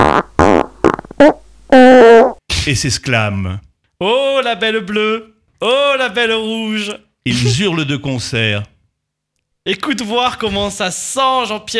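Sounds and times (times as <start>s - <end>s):
farts: 0.0s - 2.4s
speech: 2.6s - 8.7s, 9.6s - 11.7s.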